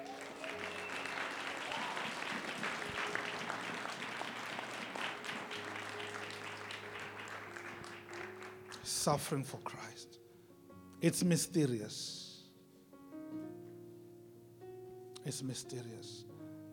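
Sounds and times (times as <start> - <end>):
audience clapping hands: 0.0 - 9.1
speech: 9.0 - 10.1, 11.0 - 12.2, 15.3 - 16.3.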